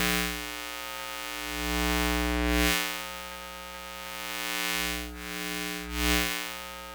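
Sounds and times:
electromagnetic field noise: 0.0 - 6.9.

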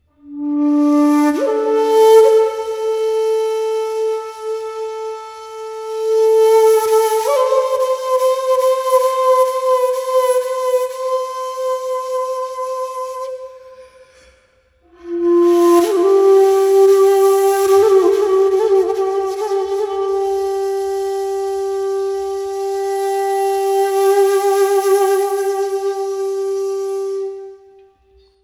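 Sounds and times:
shaku wind instrument: 0.0 - 28.4.

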